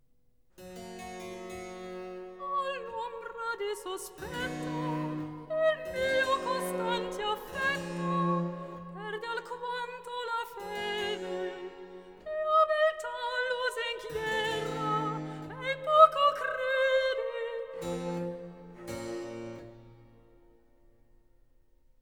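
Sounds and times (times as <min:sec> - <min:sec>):
soprano solo singing cantata recitative: 0:02.4 - 0:18.6.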